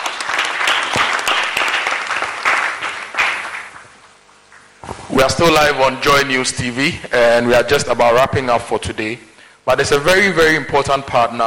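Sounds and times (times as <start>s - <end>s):
audience applause: 0.0s - 4.1s
speech: 5.2s - 11.4s.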